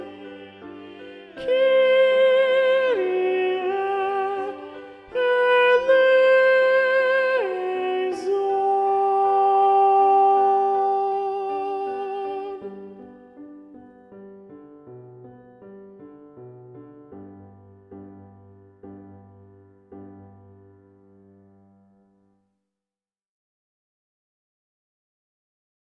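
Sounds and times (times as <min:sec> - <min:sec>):
soprano singing: 0:00.0 - 0:14.0.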